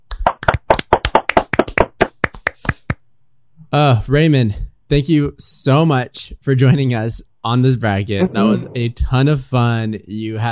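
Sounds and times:
hands clapping: 0.1 - 3.0
speech: 3.7 - 10.5.

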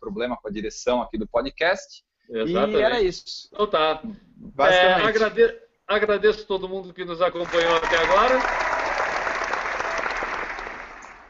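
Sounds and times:
speech: 0.0 - 8.7
crowd applause: 7.4 - 11.2.

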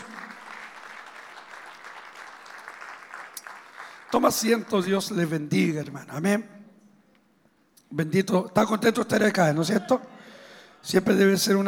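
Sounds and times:
audience applauding: 0.0 - 4.7
speech: 4.1 - 6.6, 7.9 - 10.2, 10.8 - 11.6.

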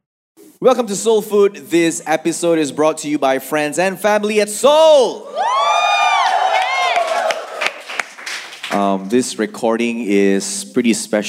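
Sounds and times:
speech: 0.6 - 5.6, 8.8 - 11.2
live audience cheering and whooping: 5.1 - 8.1
live audience clapping: 6.0 - 9.2.

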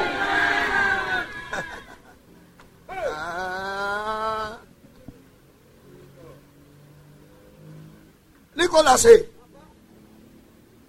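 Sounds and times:
church audience shouting amen: 0.0 - 2.0, 2.9 - 4.6
laughter: 0.0 - 4.7
speech: 8.7 - 9.3.

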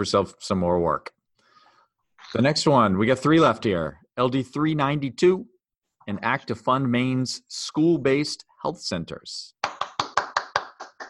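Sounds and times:
speech: 0.0 - 1.2, 2.3 - 5.5, 6.1 - 9.8
hand clapping: 9.6 - 11.0.

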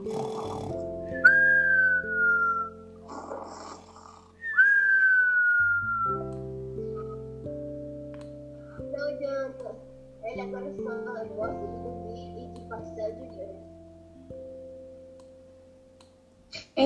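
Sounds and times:
music: 0.0 - 16.8
cartoonish whistling snore: 0.1 - 6.2.

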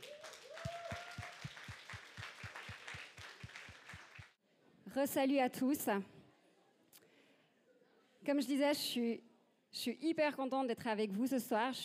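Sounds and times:
audience applause: 0.0 - 4.4
speech: 5.0 - 6.2, 8.3 - 11.8.

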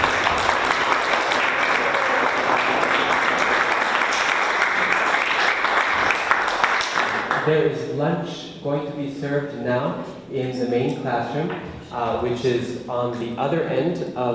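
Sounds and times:
audience applause: 0.0 - 7.5
speech: 7.5 - 14.3.

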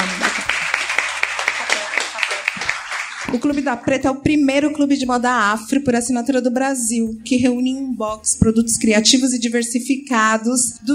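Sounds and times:
audience applause: 0.0 - 3.4
speech: 3.3 - 10.9.

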